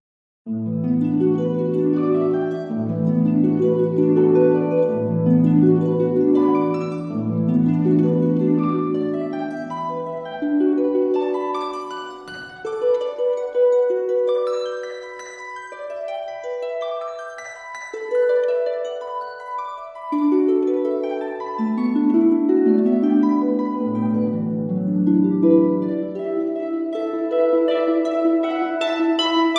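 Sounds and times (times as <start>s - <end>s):
twin harps playing: 0.5s - 29.5s.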